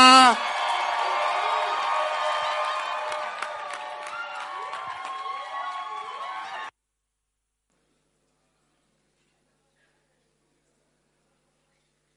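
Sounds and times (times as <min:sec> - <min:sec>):
audience cheering as a singer is welcomed on stage: 0:00.0 - 0:06.7.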